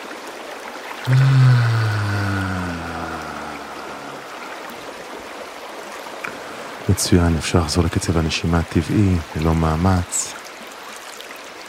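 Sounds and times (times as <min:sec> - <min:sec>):
speech: 0:01.1 - 0:01.6, 0:06.9 - 0:10.4
group exhaling a deep relaxing vocal tone: 0:01.1 - 0:04.7.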